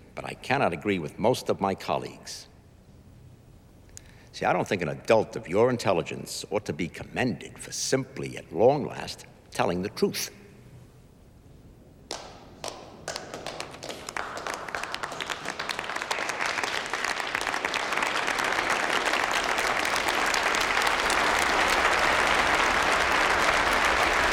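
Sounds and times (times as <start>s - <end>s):
speech: 0.2s - 2.5s, 4.4s - 10.4s
applause in a played hearing recording: 12.1s - 24.3s.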